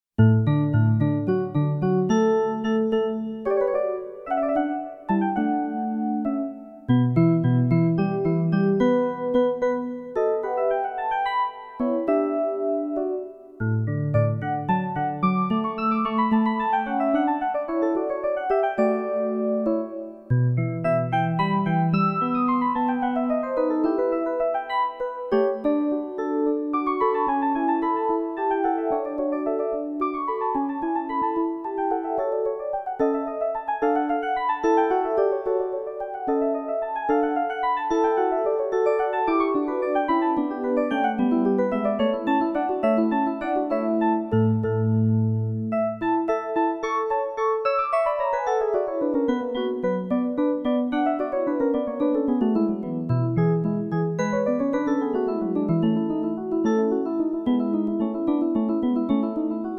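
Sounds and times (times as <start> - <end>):
piano sonata in D: 0.1 - 59.7.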